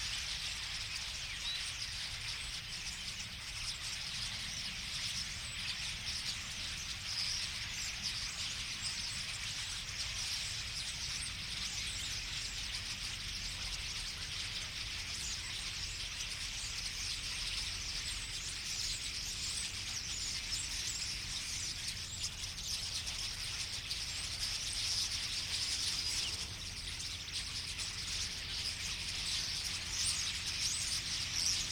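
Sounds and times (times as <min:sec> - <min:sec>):
common starlings chattering in a flock: 0:00.0 - 0:31.7.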